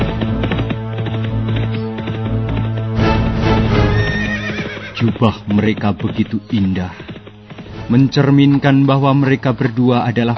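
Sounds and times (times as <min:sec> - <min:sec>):
hooves of ridden horses clip-clopping: 0:00.0 - 0:10.3
horse whinnying: 0:03.4 - 0:05.3
speech: 0:05.0 - 0:07.1, 0:07.9 - 0:10.3.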